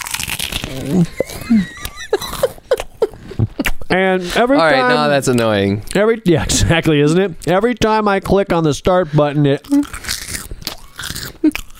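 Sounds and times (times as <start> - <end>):
chomping on snacks: 0.0 - 2.9, 9.6 - 11.7
speech: 0.7 - 1.8, 4.0 - 10.1
laughter: 1.0 - 3.8.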